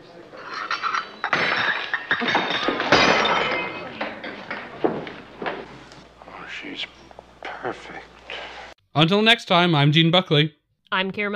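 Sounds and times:
teacup dropping and shattering: 0:00.4 - 0:05.6
ceramic shards clattering: 0:00.4 - 0:05.7
speech: 0:09.0 - 0:11.3.

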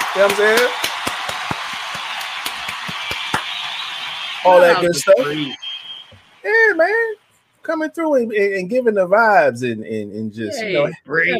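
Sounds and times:
round of applause: 0:00.0 - 0:05.6
speech: 0:00.2 - 0:00.8, 0:04.4 - 0:05.6, 0:06.4 - 0:11.3.

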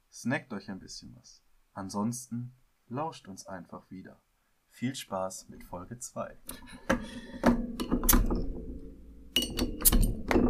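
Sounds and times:
speech: 0:00.2 - 0:07.8
beer bottle clinking: 0:09.3 - 0:10.4.

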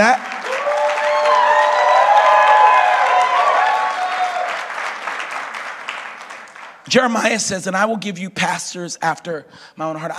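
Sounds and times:
speech: 0:00.0 - 0:00.6, 0:06.9 - 0:10.1
audience clapping for the pastors: 0:00.0 - 0:07.4.

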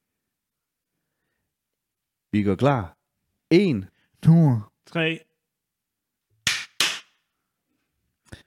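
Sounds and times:
speech: 0:02.3 - 0:05.3
sharp loud hand claps: 0:06.4 - 0:07.2.

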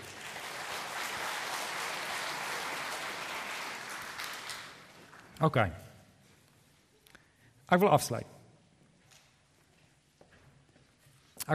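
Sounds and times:
audience applause: 0:00.0 - 0:05.4
speech: 0:05.4 - 0:05.8, 0:07.7 - 0:08.3.

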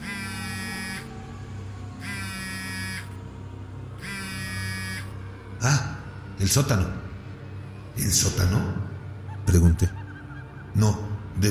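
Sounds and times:
mobile phone vibrating: 0:00.0 - 0:01.1, 0:02.0 - 0:03.1, 0:04.0 - 0:05.1
speech: 0:05.6 - 0:07.0, 0:08.0 - 0:08.8, 0:09.5 - 0:10.0, 0:10.8 - 0:11.4.

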